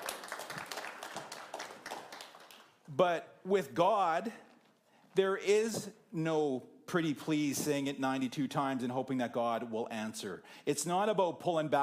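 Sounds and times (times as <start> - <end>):
audience applause: 0.0 - 2.8
speech: 2.9 - 4.5, 5.2 - 11.8.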